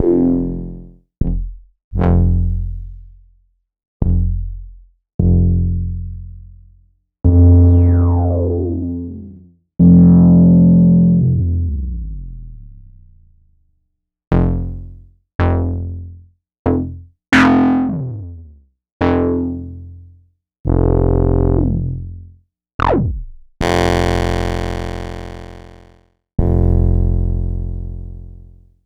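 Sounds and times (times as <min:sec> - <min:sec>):
Korg MS-20 synth bass: 0:00.0 - 0:03.0, 0:04.0 - 0:04.6, 0:05.2 - 0:06.4, 0:07.2 - 0:13.5, 0:14.3 - 0:16.1, 0:16.7 - 0:19.9, 0:20.7 - 0:22.2, 0:22.8 - 0:25.8, 0:26.4 - 0:28.4.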